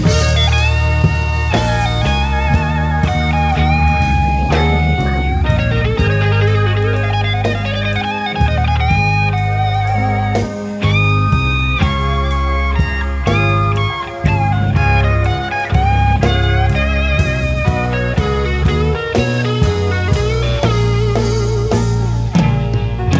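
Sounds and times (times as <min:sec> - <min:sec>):
blues guitar solo: 0:00.0 - 0:23.1.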